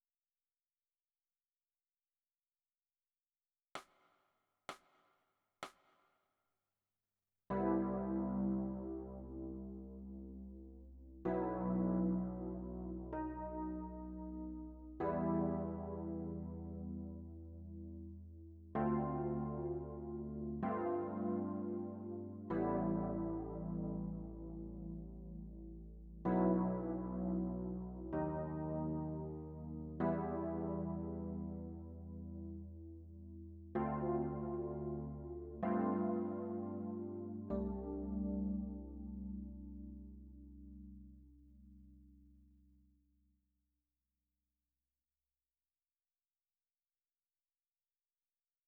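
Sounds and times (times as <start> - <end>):
electric piano: 7.5 - 42.1.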